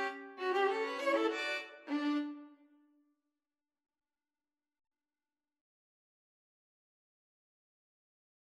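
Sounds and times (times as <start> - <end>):
string trio playing: 0.0 - 2.4.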